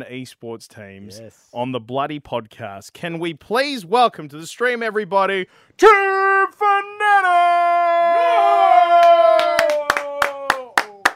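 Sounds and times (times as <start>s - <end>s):
speech: 0.0s - 9.0s
sparse hand claps from one or two people: 8.9s - 11.1s.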